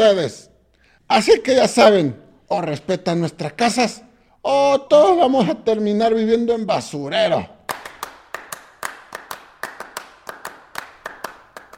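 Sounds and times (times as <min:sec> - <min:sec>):
speech: 0:00.0 - 0:00.5, 0:01.1 - 0:07.6
scattered hand claps after a speech: 0:07.7 - 0:11.7.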